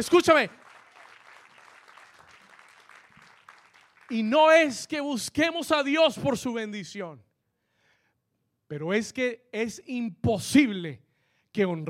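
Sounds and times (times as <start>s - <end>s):
speech: 0.0s - 0.6s, 4.1s - 7.3s, 8.7s - 11.0s, 11.6s - 11.8s
audience applause: 0.2s - 4.3s.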